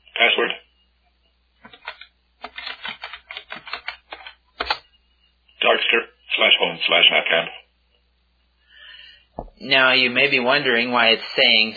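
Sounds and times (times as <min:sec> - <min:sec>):
speech: 0:00.2 - 0:00.6, 0:06.8 - 0:07.6, 0:09.6 - 0:11.7
computer keyboard typing a terminal command: 0:01.7 - 0:04.8.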